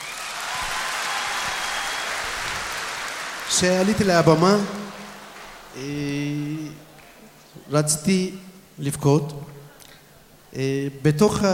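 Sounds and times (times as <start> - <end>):
audience applause and cheering: 0.0 - 7.6
speech: 3.5 - 4.8, 5.8 - 6.8, 7.7 - 9.5, 10.5 - 11.5.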